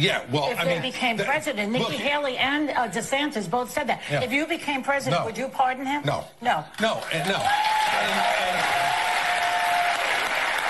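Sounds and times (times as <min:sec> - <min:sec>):
speech: 0:00.0 - 0:08.7
audience applause: 0:07.1 - 0:10.6.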